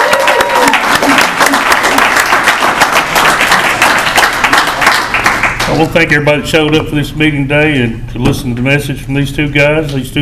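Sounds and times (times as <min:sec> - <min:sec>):
audience applause: 0:00.0 - 0:05.7
speech: 0:05.7 - 0:10.1.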